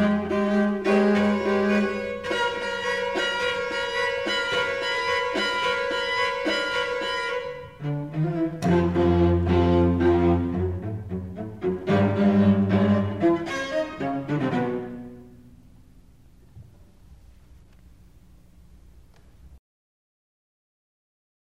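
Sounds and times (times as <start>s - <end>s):
string chamber music: 0.0s - 16.4s.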